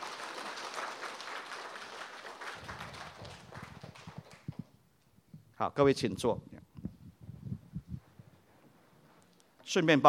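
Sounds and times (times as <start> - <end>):
audience applause: 0.0 - 4.6
speech: 5.6 - 6.6, 9.7 - 10.0.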